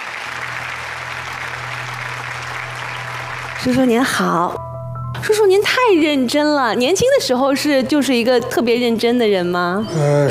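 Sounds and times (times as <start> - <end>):
studio audience applause: 0.0 - 4.6
speech: 3.6 - 10.2.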